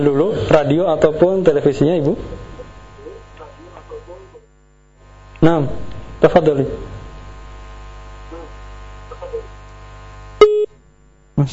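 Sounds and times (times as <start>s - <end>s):
speech: 0.0s - 2.4s, 5.4s - 6.9s, 11.4s - 11.5s
low hum: 0.0s - 11.4s
phone-line tone after a radio call-in caller's line disconnects: 10.4s - 10.7s.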